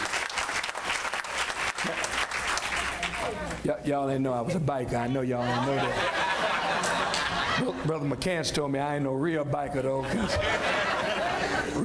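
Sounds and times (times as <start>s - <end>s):
audience applause: 0.0s - 3.6s
speech: 3.3s - 11.8s
laughter: 5.0s - 8.1s, 9.8s - 11.8s.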